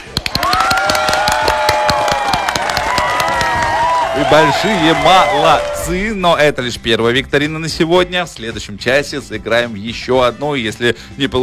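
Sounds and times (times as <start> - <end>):
loud steady applause: 0.0 - 6.0
sustained cheering or whistling voices: 0.4 - 6.0
speech: 4.3 - 11.4.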